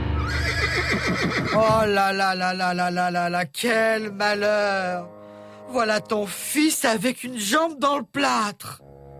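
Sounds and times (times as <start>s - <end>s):
agitated horse neighing: 0.2s - 1.9s
speech: 1.5s - 5.2s, 5.7s - 8.8s.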